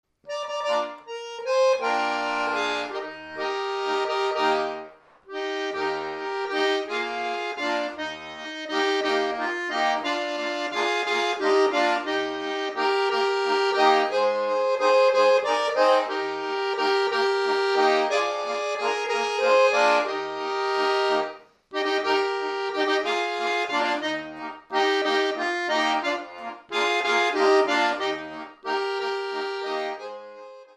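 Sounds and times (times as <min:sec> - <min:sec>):
waltz medley: 0:00.3 - 0:30.7.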